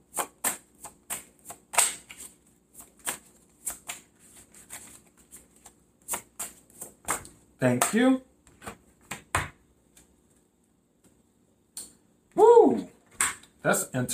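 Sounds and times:
tarot cards being shuffled and drawn: 0:00.1 - 0:10.1
speech: 0:07.6 - 0:08.3, 0:13.7 - 0:14.1.

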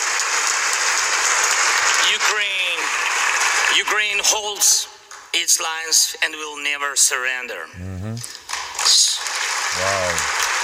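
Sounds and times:
audience applause: 0:00.0 - 0:03.9, 0:08.5 - 0:10.6
speech: 0:03.8 - 0:10.4.

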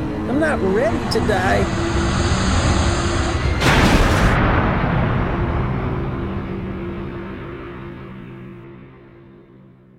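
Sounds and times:
spaceship heavy rumble: 0:00.0 - 0:09.4
speech: 0:00.4 - 0:02.0
spaceship crash impact burst on a junk-strewn moon: 0:01.7 - 0:08.6.

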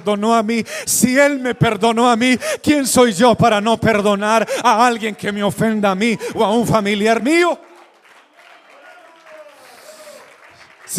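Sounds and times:
speech: 0:00.0 - 0:07.7
audience applause: 0:05.9 - 0:10.9.

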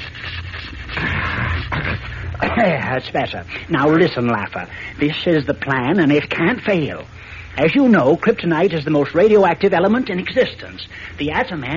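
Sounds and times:
throat spray hissing: 0:00.0 - 0:02.4
faint steady hum: 0:00.0 - 0:11.7
speech: 0:02.6 - 0:11.7.

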